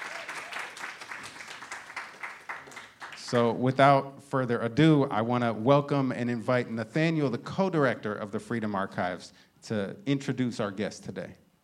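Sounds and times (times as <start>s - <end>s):
audience applause at a Freedom Archives event: 0.0s - 3.4s
speech: 3.3s - 11.4s.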